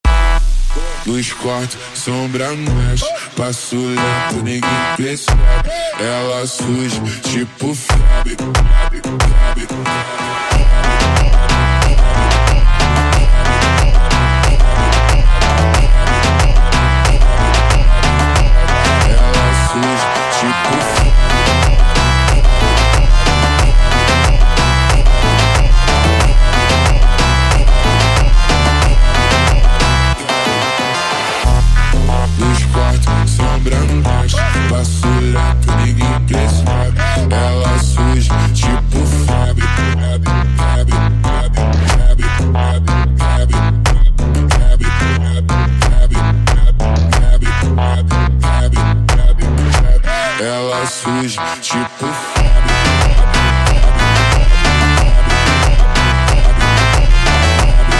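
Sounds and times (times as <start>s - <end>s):
slowed phonk music with reverb: 0.0s - 57.9s.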